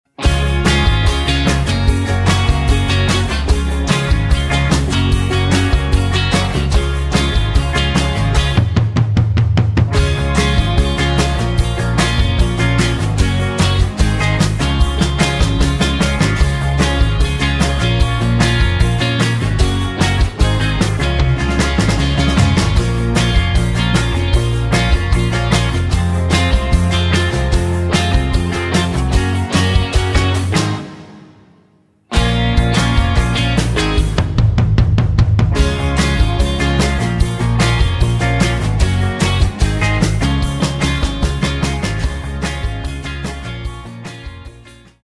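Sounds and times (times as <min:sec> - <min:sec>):
backing track in D flat without backing vocals: 0:00.1 - 0:45.0.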